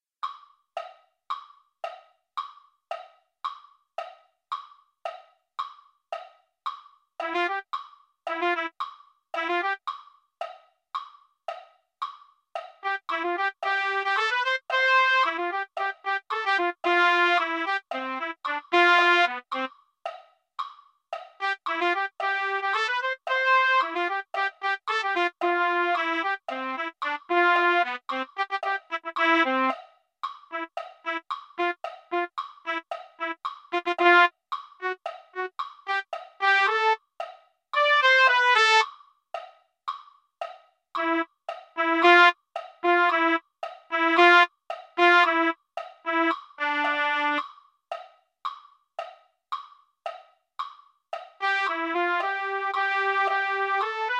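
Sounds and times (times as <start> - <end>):
trumpet: 7.2 - 7.7, 8.3 - 8.8, 9.4 - 9.8, 12.8 - 19.7, 21.4 - 29.8, 30.5 - 37.0, 37.8 - 38.9, 41.0 - 47.5, 51.4 - 54.1.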